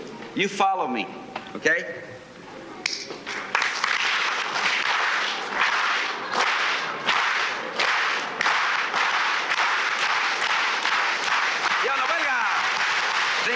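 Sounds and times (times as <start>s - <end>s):
speech: 0.4s - 2.2s
organized rhythmic group clapping: 2.9s - 13.5s.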